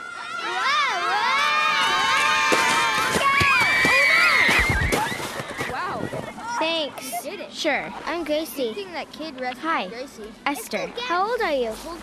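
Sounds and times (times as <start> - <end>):
children shouting and cheering while sledding down a snowy hill at Pioneer Park: 0.0 - 7.2
speech: 7.6 - 12.0.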